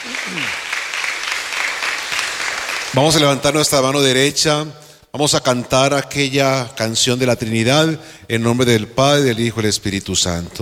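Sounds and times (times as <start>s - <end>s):
crowd applauding: 0.0s - 3.4s
speech: 0.1s - 0.7s, 2.9s - 10.5s.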